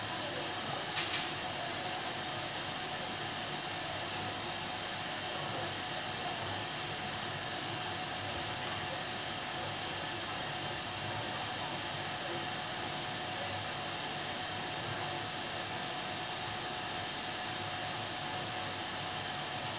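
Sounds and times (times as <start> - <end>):
hospital autoclave steriliser running: 0.0 - 19.7.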